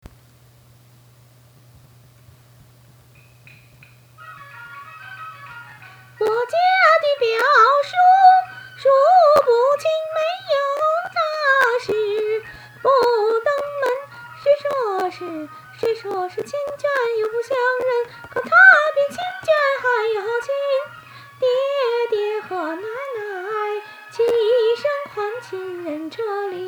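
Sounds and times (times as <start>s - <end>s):
music: 3.2s - 26.6s.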